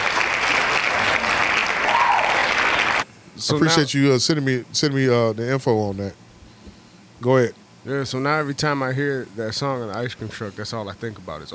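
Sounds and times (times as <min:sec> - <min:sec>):
applause: 0:00.0 - 0:03.0
speech: 0:03.5 - 0:06.2, 0:07.2 - 0:11.5.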